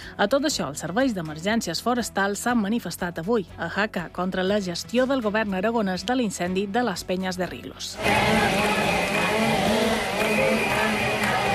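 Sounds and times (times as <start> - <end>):
speech: 0.2 - 9.0
several chainsaws running: 8.0 - 11.5.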